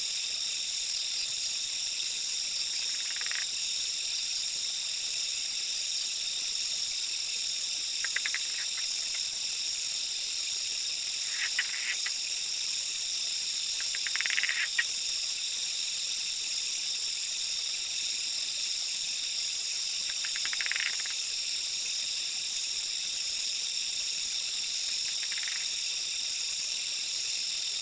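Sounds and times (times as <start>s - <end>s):
high-pitched insect chorus: 0.0s - 27.7s
Zoque treefrog call: 2.8s - 3.5s, 8.0s - 9.2s, 13.8s - 14.9s, 20.1s - 21.2s, 25.1s - 25.7s.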